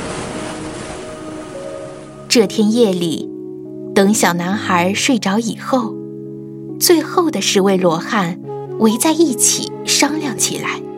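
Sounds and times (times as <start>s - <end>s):
ocean waves roaring: 0.0s - 2.3s
speech: 2.3s - 3.3s, 4.0s - 6.0s, 6.8s - 10.9s.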